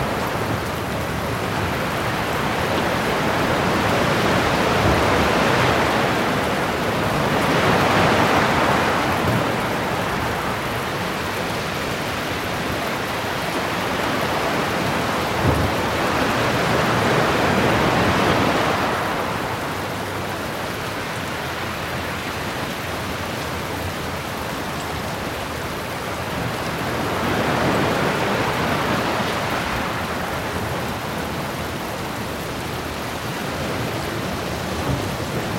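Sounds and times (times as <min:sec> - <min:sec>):
rain: 0:00.0 - 0:35.5
thunderstorms: 0:15.3 - 0:16.2.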